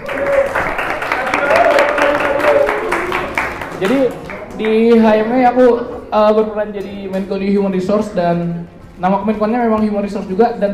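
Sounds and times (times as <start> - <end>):
faint voices cheering: 0.0 - 4.4
audience applause: 0.0 - 4.8
speech: 3.8 - 10.7.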